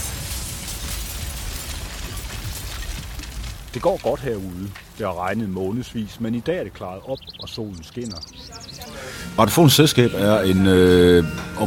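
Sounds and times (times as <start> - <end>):
large iron wrecking ball demolishing concrete building Silo 52: 0.0 - 5.5
speech: 3.7 - 11.6.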